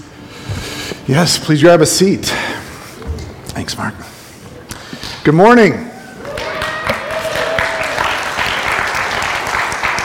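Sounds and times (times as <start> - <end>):
speech: 1.1 - 2.6, 3.6 - 4.1, 5.2 - 5.9
audience clapping: 6.2 - 10.0.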